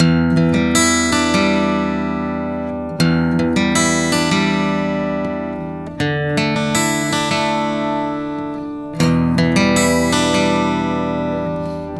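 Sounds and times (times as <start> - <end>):
acoustic guitar arpeggio: 0.0 - 11.9.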